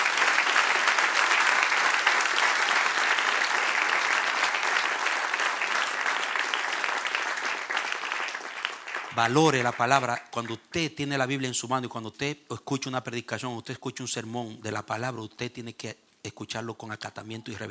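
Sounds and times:
audience applause: 0.0 - 10.0
speech: 9.2 - 17.6.

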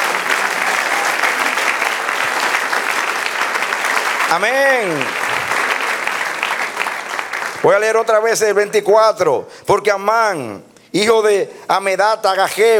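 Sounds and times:
audience applauding: 0.0 - 8.2
speech: 4.3 - 5.3, 7.6 - 12.7.

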